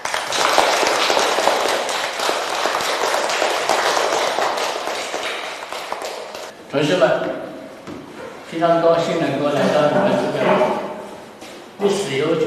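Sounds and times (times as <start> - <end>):
audience applauding to welcome a guest: 0.0 - 6.5
speech: 6.8 - 7.4, 8.5 - 10.8.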